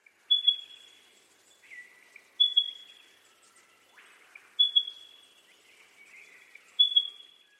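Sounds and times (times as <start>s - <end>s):
spotted pardalote call: 0.3s - 1.0s, 1.7s - 3.0s, 4.6s - 5.2s, 6.2s - 7.5s.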